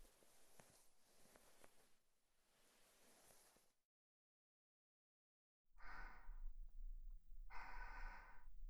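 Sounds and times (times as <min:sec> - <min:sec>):
person breathing in sleep beside the listener: 0:05.8 - 0:06.6, 0:07.5 - 0:08.6.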